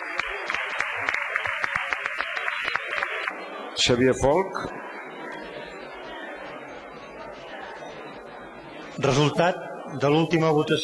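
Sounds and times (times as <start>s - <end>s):
audience applause: 0.0s - 3.4s
speech: 3.8s - 4.8s, 9.0s - 10.8s.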